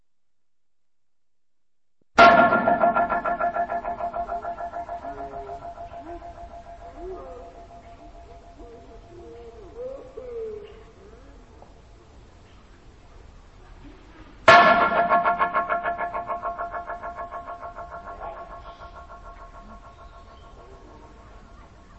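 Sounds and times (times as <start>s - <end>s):
loud sudden strikes under a parabolic bridge: 2.2s - 8.7s, 14.5s - 21.9s
slowed-down echoes from a parabolic bridge: 2.2s - 9.9s, 14.5s - 21.9s.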